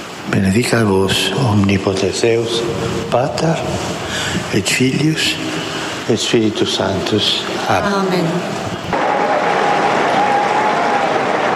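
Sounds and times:
speech: 0:00.3 - 0:08.6
large crowd applause: 0:08.9 - 0:11.5.

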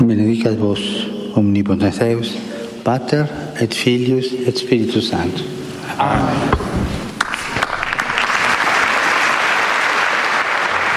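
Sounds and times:
speech: 0:00.0 - 0:06.9
large crowd applause closing Pope Francis's general audience: 0:07.2 - 0:10.9.

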